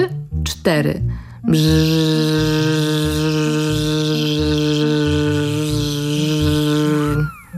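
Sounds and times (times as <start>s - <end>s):
speech: 0.6s - 4.5s
imitated fly buzzing: 1.5s - 7.5s.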